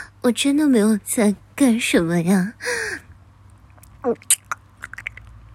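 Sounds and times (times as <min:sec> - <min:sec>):
speech: 0:00.2 - 0:02.8
person eating and chewing food: 0:03.7 - 0:05.3.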